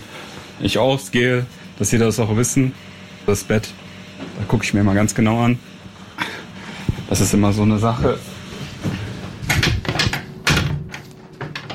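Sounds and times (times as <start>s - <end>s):
speech: 0.6s - 3.8s, 4.4s - 5.7s, 7.1s - 8.3s
cupboard being opened and shut during cell search: 8.6s - 11.7s.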